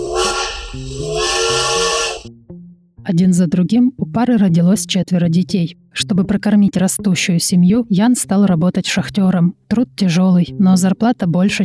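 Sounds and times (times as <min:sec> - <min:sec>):
steam train whistle: 0:00.0 - 0:02.3
speech: 0:03.1 - 0:11.6.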